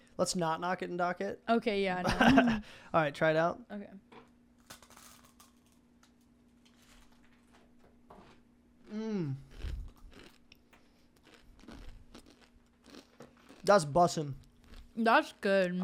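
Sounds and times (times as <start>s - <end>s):
low steady hum: 0.0s - 15.8s
speech: 0.2s - 4.2s, 8.9s - 9.5s, 13.6s - 14.4s, 15.0s - 15.8s
chip being bitten and chewed: 4.6s - 7.5s, 8.2s - 15.8s
brief descending hum of a voice: 8.9s - 9.9s.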